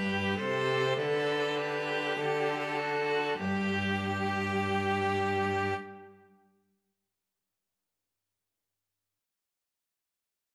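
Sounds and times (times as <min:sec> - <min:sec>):
string trio playing: 0:00.0 - 0:06.1.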